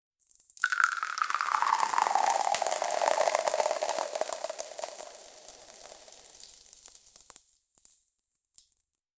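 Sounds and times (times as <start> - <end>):
powder pouring out of a jar: 0.6 - 8.0.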